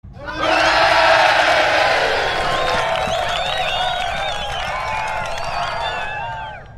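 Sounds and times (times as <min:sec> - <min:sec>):
people cheering: 0:00.2 - 0:06.7.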